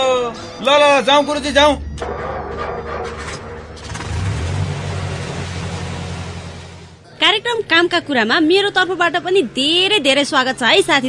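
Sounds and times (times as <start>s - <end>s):
broadband road noise: 0.0s - 11.0s
speech: 0.6s - 2.2s, 7.2s - 11.0s
bus engine rumble on a ride to Gaindakot, Nawalparasi: 2.0s - 7.2s.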